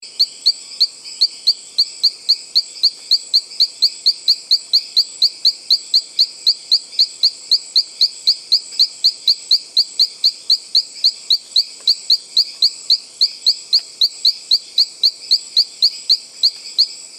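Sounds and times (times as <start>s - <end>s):
Allobates masniger frog calling: 0.0s - 17.0s.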